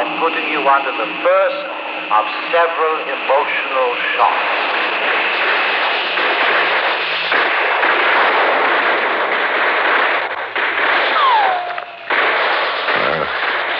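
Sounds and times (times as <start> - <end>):
speech: 0.1 - 5.1
gunfire and blasts on a battlefield: 3.8 - 13.7.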